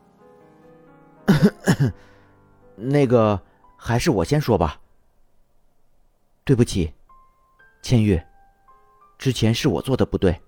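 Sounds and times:
man clearing throat with a short cough: 1.3s - 2.1s
speech: 1.4s - 2.1s, 2.8s - 4.8s, 6.4s - 7.0s, 7.8s - 8.3s, 9.2s - 10.4s.

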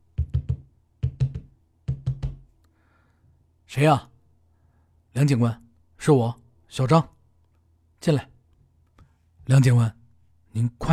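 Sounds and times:
urgent knocking on office door: 0.2s - 2.4s
speech: 3.7s - 4.1s, 5.2s - 7.2s, 8.0s - 8.3s, 9.5s - 10.0s, 10.6s - 10.9s.

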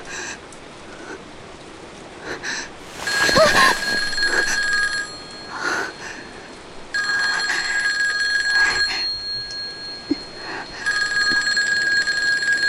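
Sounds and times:
telephone ringing: 2.9s - 6.0s, 7.0s - 10.2s, 10.8s - 12.6s.

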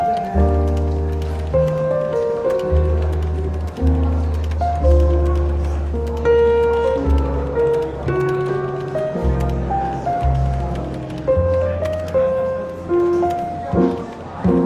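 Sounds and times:
quiet murmuring voices: 0.0s - 14.6s
soft relaxed jazz in a London bookshop café: 0.0s - 14.6s.

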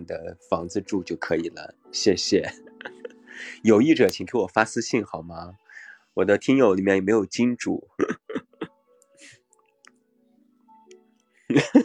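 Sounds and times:
speech: 0.1s - 5.6s, 6.2s - 8.2s, 11.5s - 11.8s
cough: 8.0s - 8.7s.

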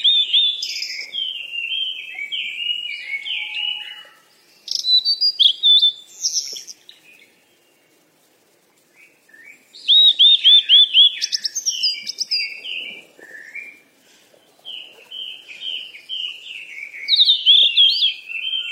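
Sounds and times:
bird song of sliding whistled notes and chirps: 0.0s - 8.0s, 8.9s - 18.6s.

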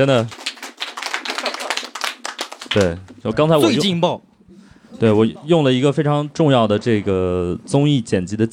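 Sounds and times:
speech: 0.0s - 0.4s, 2.8s - 8.5s
applause: 0.0s - 3.1s.

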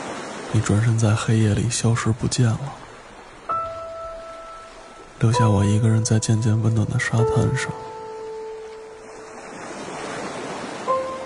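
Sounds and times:
ocean waves breaking on sand: 0.0s - 5.4s, 7.8s - 11.2s
speech: 0.5s - 2.8s, 5.2s - 7.9s.

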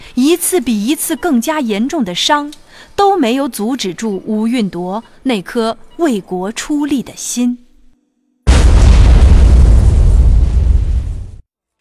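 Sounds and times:
speech: 0.2s - 7.6s
explosion sound effect: 8.4s - 11.4s.

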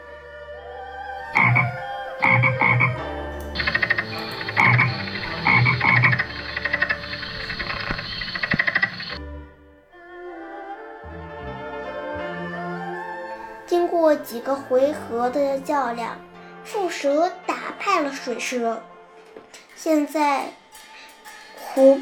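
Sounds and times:
frog croaking loudly: 1.4s - 9.2s
speech: 14.2s - 18.9s, 19.8s - 20.6s, 21.8s - 22.0s.

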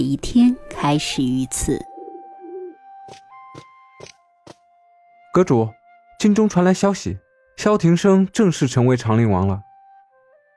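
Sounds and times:
speech: 0.0s - 1.9s, 5.4s - 9.7s
bird cooing in the morning: 1.7s - 3.2s.

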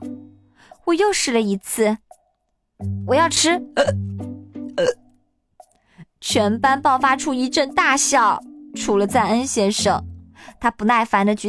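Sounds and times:
speech: 0.9s - 2.0s, 2.8s - 4.1s, 4.8s - 5.0s, 6.2s - 11.4s
person hiccuping: 3.8s - 4.0s, 4.8s - 5.1s.

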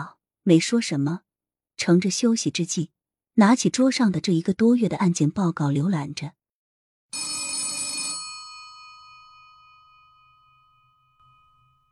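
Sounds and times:
speech: 0.0s - 1.2s, 1.8s - 6.4s
desk telephone ringing: 7.2s - 11.2s.

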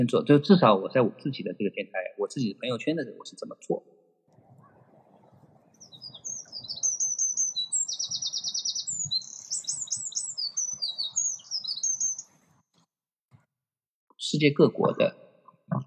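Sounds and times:
speech: 0.0s - 4.0s, 14.3s - 15.2s
birdsong with chirps and trills on a balcony: 4.4s - 12.7s.

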